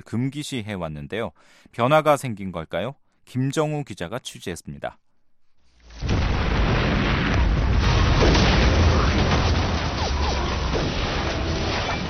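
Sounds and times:
speech: 0.0s - 5.0s
explosions in war drama scene: 5.9s - 12.0s
gunfire in war drama scene: 6.0s - 12.0s.

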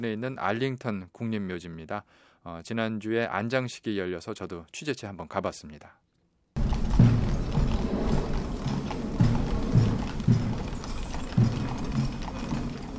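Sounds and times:
speech: 0.0s - 6.0s
clip-clop of six horses drawing an old ammunition caisson: 6.6s - 12.9s
slow drum beats from a US Marine Corps band at a funeral: 6.6s - 12.9s
steady rumbling background: 6.6s - 12.9s.

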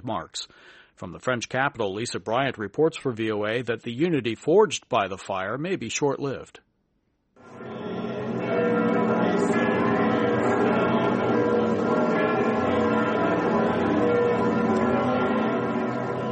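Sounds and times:
speech: 0.0s - 6.7s
church bells ringing: 7.4s - 16.3s.

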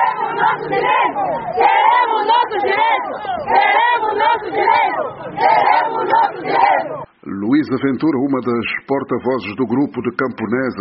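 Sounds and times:
women shouting slogans at a protest at the municipal administration door: 0.0s - 7.1s
speech: 0.4s - 1.7s, 7.6s - 10.8s.

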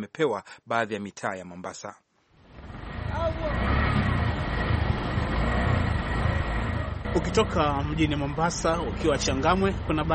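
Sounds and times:
speech: 0.0s - 2.0s, 7.1s - 10.1s
road traffic of cars and cargo trailers in Changamwe, Mombasa: 2.4s - 10.1s.

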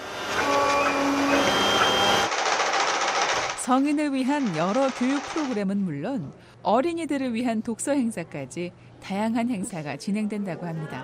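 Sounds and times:
3D printer or sewing machine whirring: 0.0s - 5.6s
speech: 3.7s - 11.0s.

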